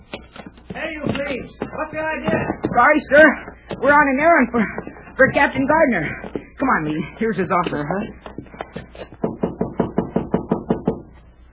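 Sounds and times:
speech: 0:00.9 - 0:08.2
knocking on a door: 0:01.0 - 0:06.2, 0:09.2 - 0:11.1.

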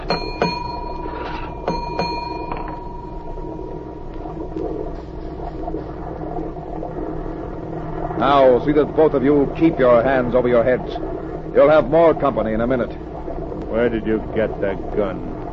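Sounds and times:
ship's engine room signal bell ringing: 0:00.0 - 0:04.0
speech: 0:08.2 - 0:13.0, 0:13.7 - 0:15.3.

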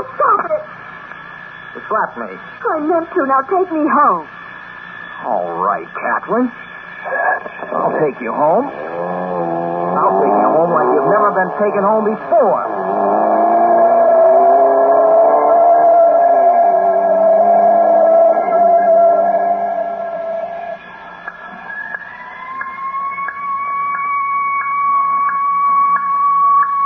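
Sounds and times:
speech: 0:01.8 - 0:04.4, 0:05.2 - 0:09.2, 0:10.0 - 0:12.7
ambulance siren: 0:07.8 - 0:26.8.

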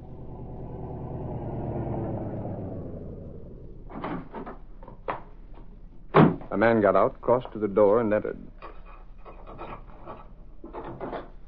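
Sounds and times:
car drawing up before the entrance: 0:00.0 - 0:05.3
speech: 0:06.6 - 0:08.5.

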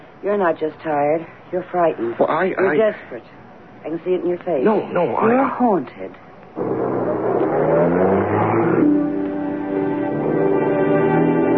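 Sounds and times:
speech: 0:00.2 - 0:06.8
car engine driving off: 0:06.6 - 0:10.5.

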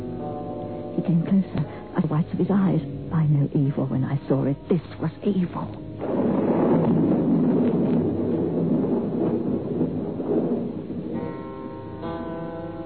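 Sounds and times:
speech: 0:01.0 - 0:06.3
thunderstorm: 0:05.9 - 0:12.4.

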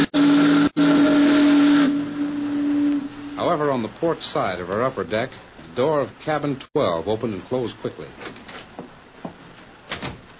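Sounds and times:
big steamboat's doleful whistle: 0:00.0 - 0:03.7
speech: 0:03.8 - 0:08.4.

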